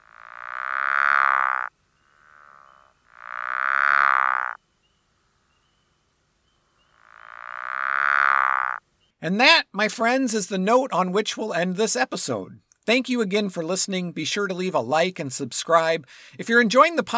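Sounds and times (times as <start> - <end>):
pickerel frog low-pitched snoring call: 0.0 - 4.6, 6.9 - 8.8
speech: 9.2 - 17.1.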